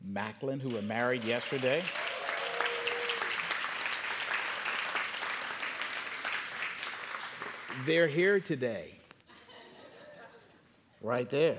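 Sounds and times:
speech: 0:00.0 - 0:02.1, 0:07.8 - 0:09.0, 0:11.0 - 0:11.5
church congregation applauding newlyweds: 0:00.6 - 0:08.5
laughter: 0:09.3 - 0:10.6.

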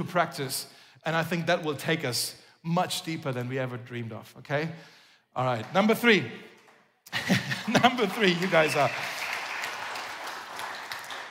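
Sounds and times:
speech: 0:00.0 - 0:06.5, 0:07.1 - 0:09.1
laughter: 0:07.1 - 0:08.7
audience applause: 0:07.2 - 0:11.2.

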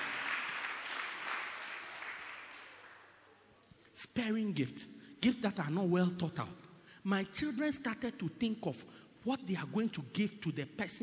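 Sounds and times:
audience clapping: 0:00.0 - 0:03.5
speech: 0:04.0 - 0:11.0.

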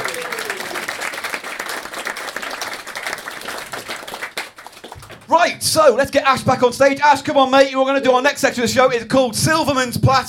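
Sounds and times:
audience applauding: 0:00.0 - 0:05.4
speech: 0:05.3 - 0:10.2.

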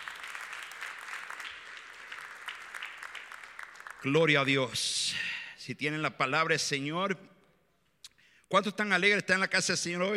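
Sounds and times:
audience applause: 0:00.0 - 0:04.6
speech: 0:04.0 - 0:07.3, 0:08.5 - 0:10.1.

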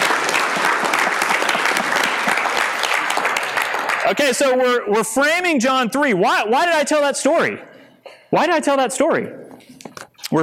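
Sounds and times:
audience applauding: 0:00.0 - 0:04.6
speech: 0:04.1 - 0:07.7, 0:08.3 - 0:09.4.

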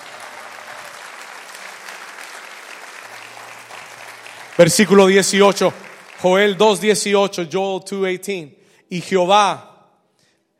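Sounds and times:
audience applauding: 0:00.0 - 0:07.2
speech: 0:04.6 - 0:09.7.

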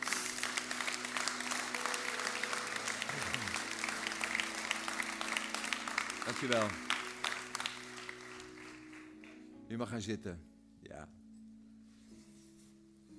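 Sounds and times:
audience applauding: 0:00.0 - 0:09.5
speech: 0:06.3 - 0:06.9, 0:09.7 - 0:11.2.

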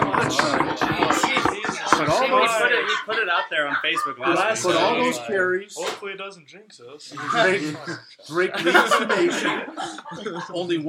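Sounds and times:
several hands knocking on wood: 0:00.0 - 0:02.5
laughter: 0:00.0 - 0:05.2, 0:07.1 - 0:10.8
speech: 0:00.3 - 0:00.6, 0:02.4 - 0:10.8.

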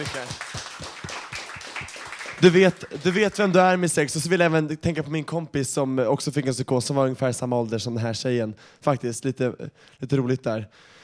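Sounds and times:
speech: 0:00.0 - 0:00.5, 0:02.4 - 0:11.0
applause, hands clapping: 0:00.0 - 0:03.8.

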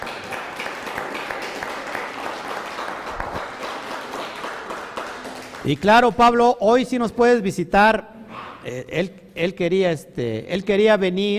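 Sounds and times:
crowd applause: 0:00.0 - 0:05.8
speech: 0:05.6 - 0:11.3.

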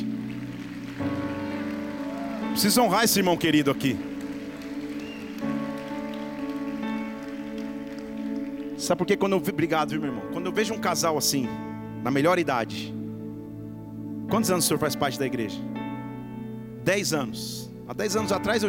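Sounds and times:
audience applauding: 0:00.0 - 0:09.3
speech: 0:02.6 - 0:04.1, 0:08.9 - 0:13.0, 0:14.3 - 0:15.7, 0:16.8 - 0:18.6.

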